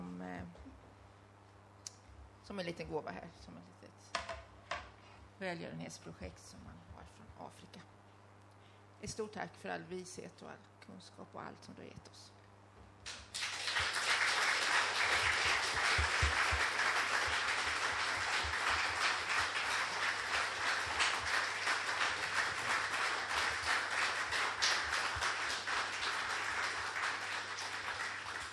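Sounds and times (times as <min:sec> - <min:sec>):
speech: 0:02.5 - 0:04.4, 0:05.4 - 0:08.0, 0:09.0 - 0:12.4
audience applause: 0:13.1 - 0:28.5.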